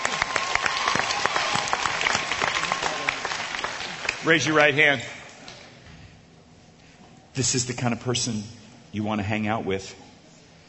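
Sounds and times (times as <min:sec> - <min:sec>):
audience applause: 0:00.0 - 0:05.1
speech: 0:04.2 - 0:05.2, 0:07.4 - 0:10.0.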